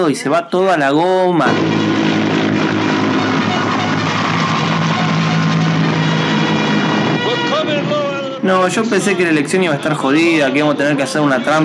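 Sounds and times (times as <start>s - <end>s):
speech: 0.0s - 2.1s, 8.6s - 11.6s
helicopter rotor: 1.5s - 8.2s.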